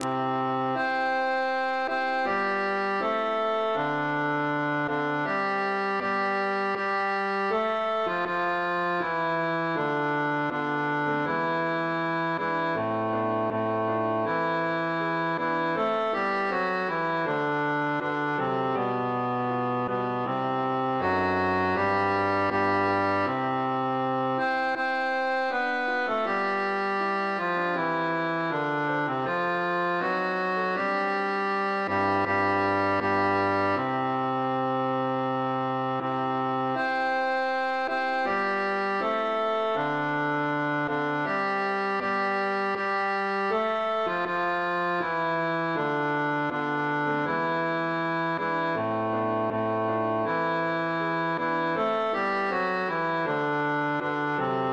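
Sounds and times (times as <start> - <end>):
bass: 0.0 - 54.7.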